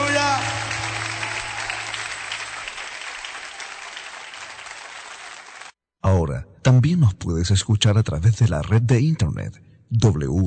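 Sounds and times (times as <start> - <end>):
audience clapping hands: 0.0 - 5.8
speech: 6.4 - 10.4.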